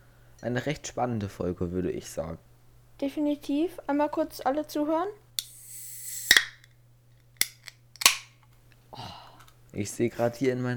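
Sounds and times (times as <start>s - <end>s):
speech: 0.4s - 5.2s, 9.8s - 10.7s
cola can being opened: 5.4s - 6.7s, 7.4s - 8.3s.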